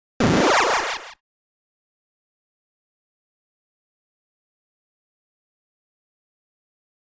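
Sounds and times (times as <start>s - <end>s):
opening title and start sound effects: 0.2s - 1.2s.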